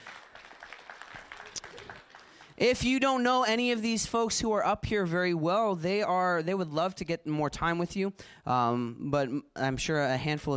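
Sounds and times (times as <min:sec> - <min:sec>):
audience applauding: 0:00.0 - 0:02.8
speech: 0:02.6 - 0:10.5.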